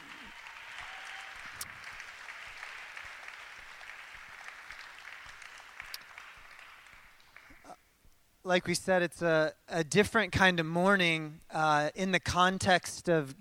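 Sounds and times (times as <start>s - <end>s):
audience applause: 0.0s - 7.6s
speech: 8.5s - 13.3s.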